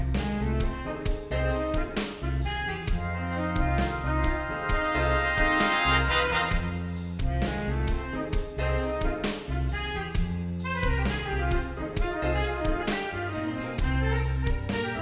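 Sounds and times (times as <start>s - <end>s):
horns in fifths: 0.2s - 15.0s.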